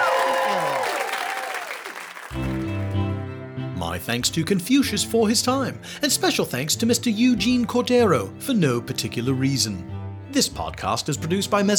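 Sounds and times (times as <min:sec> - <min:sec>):
bright cheering: 0:00.0 - 0:02.8
audience applause: 0:00.0 - 0:03.0
speech: 0:03.8 - 0:11.7.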